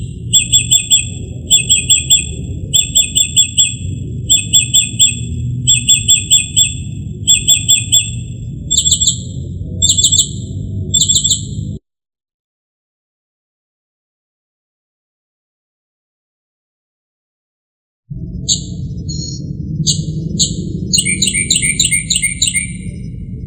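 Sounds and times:
northern mockingbird singing: 0:00.0 - 0:11.6, 0:18.5 - 0:23.4.

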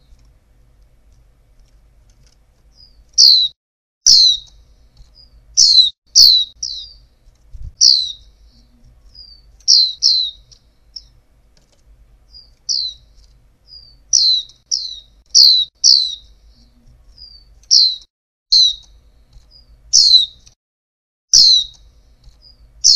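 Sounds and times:
female white-eye downward-slurred chirps: 0:02.7 - 0:07.1, 0:07.8 - 0:11.2, 0:12.3 - 0:20.5, 0:21.4 - 0:22.9.

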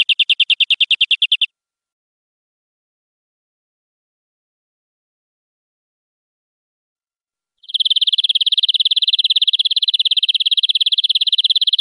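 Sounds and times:
European greenfinch buzzy trill: 0:00.0 - 0:01.5, 0:07.6 - 0:11.7.

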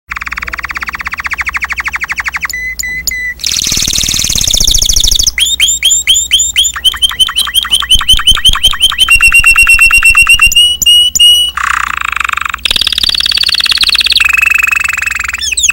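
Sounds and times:
Timbrado canary singing: 0:00.1 - 0:15.7.

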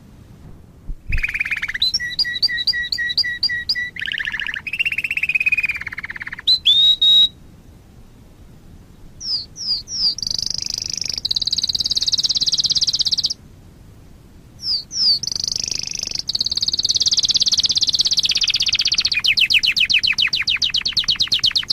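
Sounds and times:
Waterslager canary song: 0:01.0 - 0:07.4, 0:08.8 - 0:13.4, 0:14.6 - 0:21.7.

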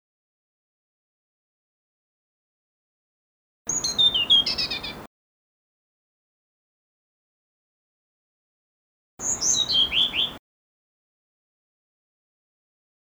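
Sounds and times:
blue-throated blue flycatcher song: 0:03.7 - 0:05.1, 0:09.2 - 0:10.4.

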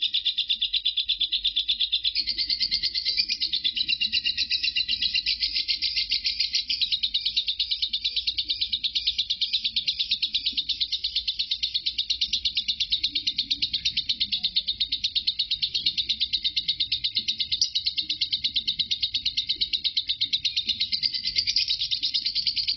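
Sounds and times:
lovebird chattering in ngekek style: 0:00.0 - 0:22.7.

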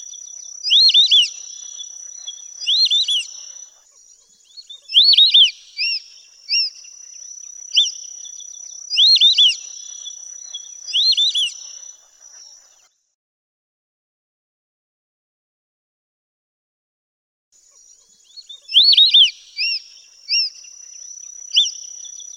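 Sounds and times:
white-faced whistling duck three-note whistled calls: 0:00.6 - 0:03.6, 0:04.9 - 0:06.8, 0:08.9 - 0:11.6, 0:18.7 - 0:20.5.

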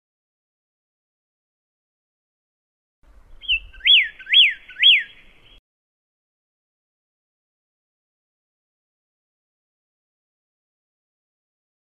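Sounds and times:
pyrrhuloxia singing thin and slurred whistles: 0:03.3 - 0:05.6.

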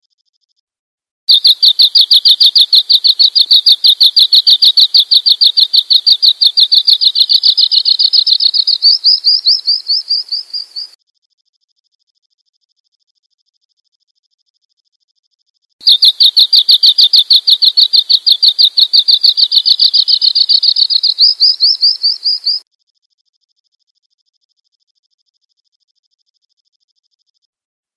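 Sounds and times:
bird chirping: 0:01.3 - 0:11.0, 0:15.8 - 0:22.6.

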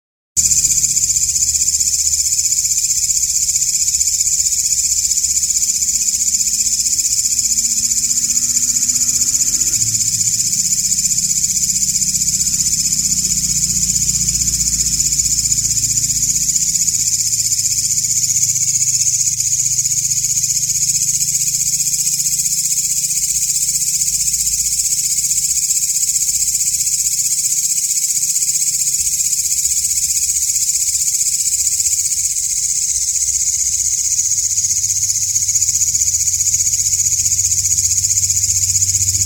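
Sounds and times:
grasshopper call: 0:00.4 - 0:39.2
faint low drone: 0:04.9 - 0:18.8.

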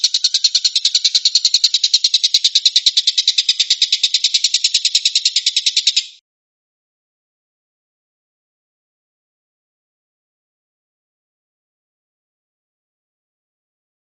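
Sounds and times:
stork-billed kingfisher harsh rattle: 0:00.0 - 0:06.2.

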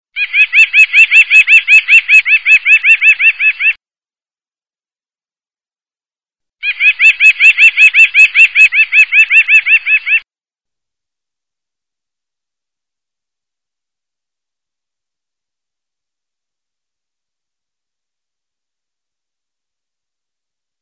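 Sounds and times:
bird singing upswept chirps: 0:00.2 - 0:03.8, 0:06.6 - 0:10.2.

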